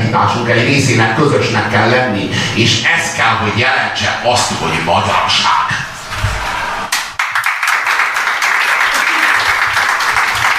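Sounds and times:
speech: 0:00.1 - 0:05.8
audience applause: 0:06.9 - 0:10.5.

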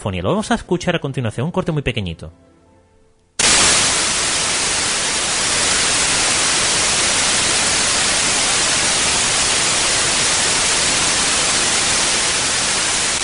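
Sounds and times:
speech: 0:00.0 - 0:02.5
white noise tape hiss static: 0:03.3 - 0:13.2.

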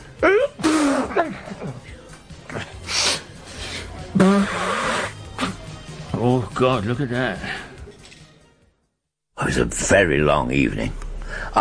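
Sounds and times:
sneezing: 0:00.2 - 0:01.8, 0:04.1 - 0:05.7
speech: 0:06.3 - 0:07.6, 0:09.5 - 0:11.0.

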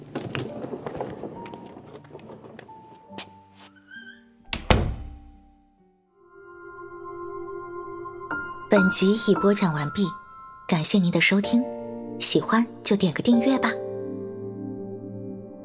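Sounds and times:
door being pulled open: 0:00.0 - 0:05.4
speech: 0:08.8 - 0:13.8.

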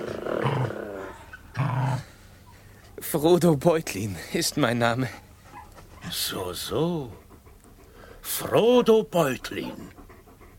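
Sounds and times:
dogs growling: 0:00.0 - 0:02.3, 0:04.4 - 0:10.5
speech: 0:03.0 - 0:05.2, 0:06.1 - 0:07.2, 0:08.3 - 0:10.0.

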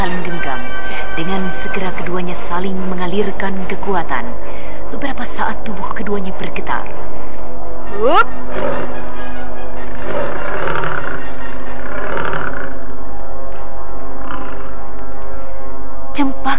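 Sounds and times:
speech: 0:00.0 - 0:07.2, 0:07.9 - 0:09.0
steady low drone: 0:00.0 - 0:16.5
tiger roaring in deep rumbling growls: 0:08.4 - 0:09.0, 0:09.9 - 0:12.9.

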